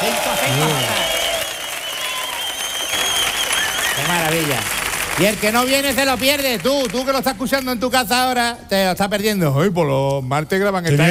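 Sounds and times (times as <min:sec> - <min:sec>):
studio audience applause at a Spanish radio show: 0:00.0 - 0:07.9
speech: 0:00.5 - 0:01.0, 0:04.3 - 0:11.0.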